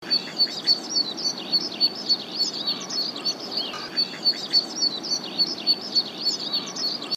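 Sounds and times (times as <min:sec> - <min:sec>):
other birds chirping: 0:00.0 - 0:07.1.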